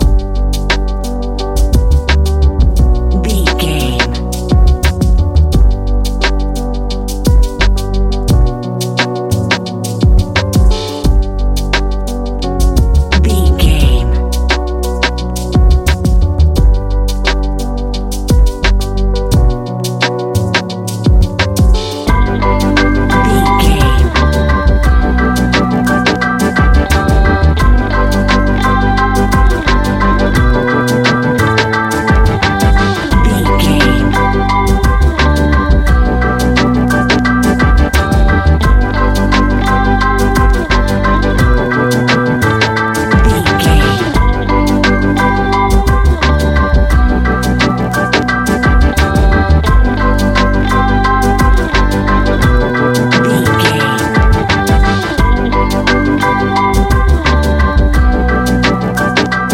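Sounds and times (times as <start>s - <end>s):
relaxed chill music: 0.0s - 59.5s.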